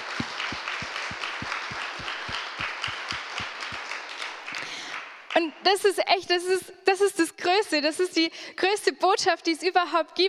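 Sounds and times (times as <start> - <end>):
audience applause: 0.0 - 5.1
speech: 5.4 - 10.2.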